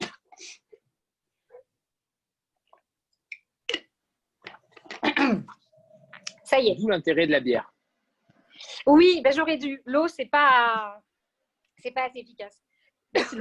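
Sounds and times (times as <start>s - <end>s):
woman coughing: 4.9s - 5.6s, 13.1s - 13.3s
speech: 6.5s - 7.7s, 8.9s - 11.1s, 11.8s - 13.3s.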